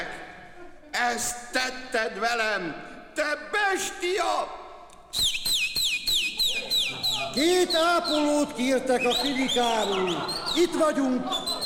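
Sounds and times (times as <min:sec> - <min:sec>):
laughter: 0:00.1 - 0:01.2, 0:06.3 - 0:11.6
speech: 0:01.0 - 0:05.4, 0:07.4 - 0:11.4
man whistling: 0:05.1 - 0:08.4, 0:09.0 - 0:10.6, 0:11.3 - 0:11.6.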